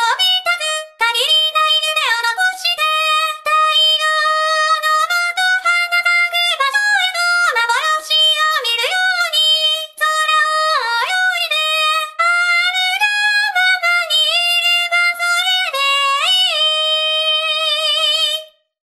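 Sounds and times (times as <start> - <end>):
person singing: 0.0 - 18.6.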